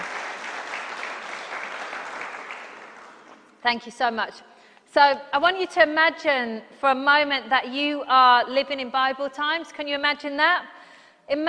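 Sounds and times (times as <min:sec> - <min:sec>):
audience applause: 0:00.0 - 0:03.5
speech: 0:03.6 - 0:11.4.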